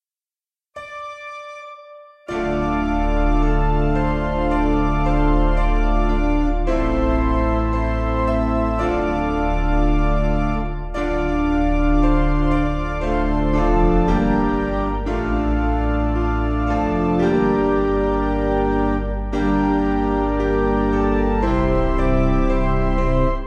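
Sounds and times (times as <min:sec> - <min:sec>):
piano: 0:00.8 - 0:23.4.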